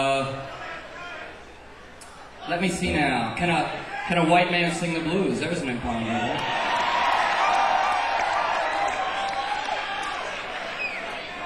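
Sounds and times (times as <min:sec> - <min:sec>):
speech: 0:02.5 - 0:06.6
live show crowd cheering and applause: 0:06.2 - 0:11.4.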